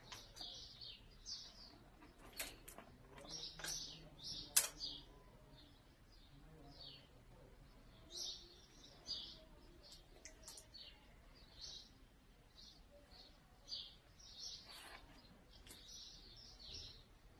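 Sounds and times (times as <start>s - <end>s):
birds chirping and twittering: 0.0s - 17.3s
low murmuring tones: 0.0s - 17.3s
sharp clicks: 4.5s - 4.9s.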